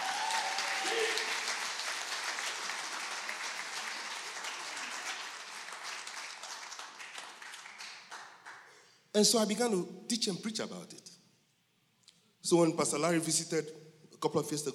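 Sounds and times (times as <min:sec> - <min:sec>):
audience clapping: 0:00.0 - 0:08.8
speech: 0:09.2 - 0:11.2, 0:12.4 - 0:14.7.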